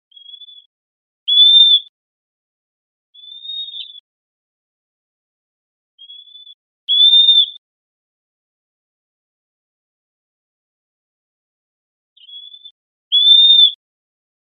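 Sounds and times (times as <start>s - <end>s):
Western wood-pewee giving a clear high whistled note: 0.1s - 0.7s, 1.3s - 1.9s, 3.2s - 4.0s, 6.0s - 7.6s, 12.2s - 13.8s.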